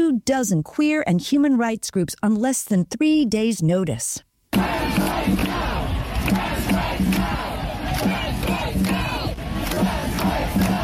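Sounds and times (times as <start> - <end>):
speech: 0.0 - 5.7
large protest crowd chanting at demonstration: 4.5 - 10.8.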